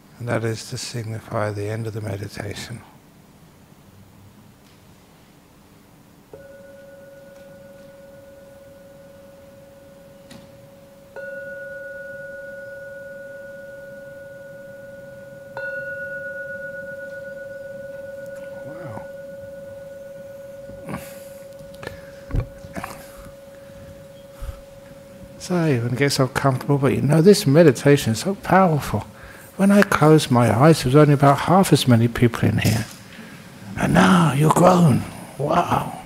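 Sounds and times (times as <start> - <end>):
speech: 0.2 - 3.0, 25.5 - 32.9, 33.8 - 36.0
meditation bell struck: 6.3 - 31.6.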